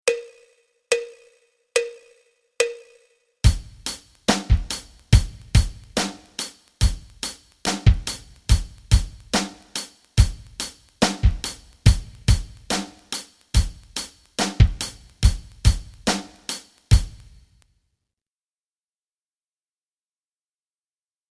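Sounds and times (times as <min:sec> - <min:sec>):
rock rhythms: 0:03.4 - 0:17.4.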